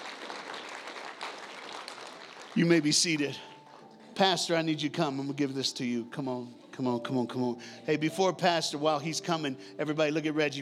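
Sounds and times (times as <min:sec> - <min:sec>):
audience clapping: 0:00.0 - 0:03.8
speech: 0:02.6 - 0:03.5, 0:04.2 - 0:10.5.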